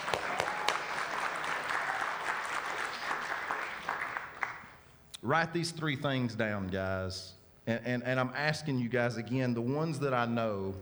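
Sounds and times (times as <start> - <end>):
audience applause: 0.0 - 4.8
speech: 5.3 - 10.8.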